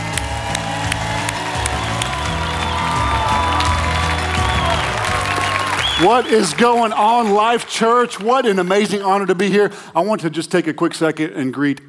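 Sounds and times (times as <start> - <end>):
whoops: 0.0 - 6.3
church congregation clapping for a guest speaker: 0.0 - 9.0
speech: 6.0 - 11.8.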